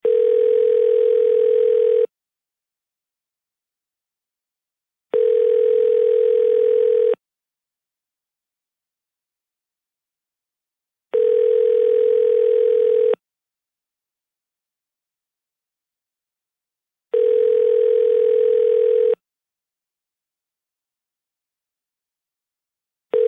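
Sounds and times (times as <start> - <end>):
telephone: 0.0 - 2.1, 5.1 - 7.2, 11.1 - 13.2, 17.1 - 19.2.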